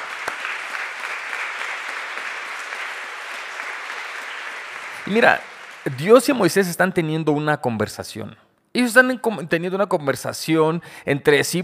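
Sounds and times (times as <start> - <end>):
audience clapping: 0.0 - 6.8
speech: 5.1 - 11.6.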